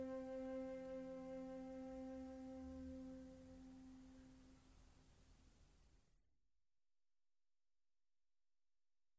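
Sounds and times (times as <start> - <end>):
Asian zen instrumental music: 0.0 - 4.6.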